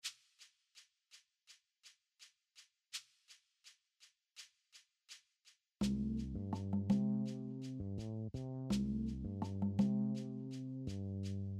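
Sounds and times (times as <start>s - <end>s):
music: 5.8s - 11.5s.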